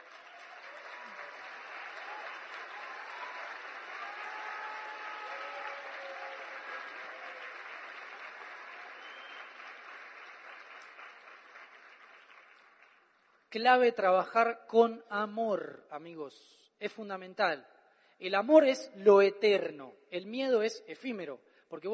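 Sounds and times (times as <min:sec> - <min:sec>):
audience applause: 0:00.0 - 0:13.3
speech: 0:13.5 - 0:21.9.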